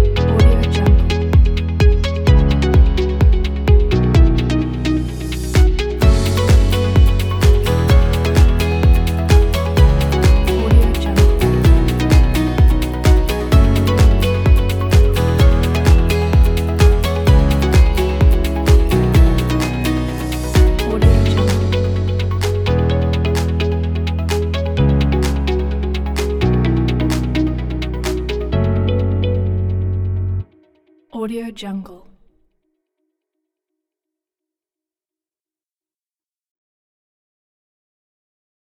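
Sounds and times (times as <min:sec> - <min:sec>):
upbeat inspiring corporate tech music: 0:00.0 - 0:30.1.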